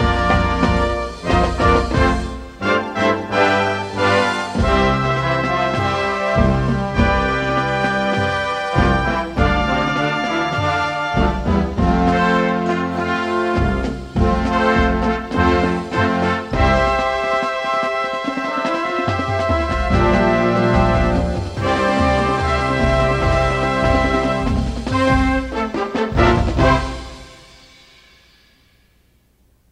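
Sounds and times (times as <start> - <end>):
drumline playing: 0.0 - 28.5.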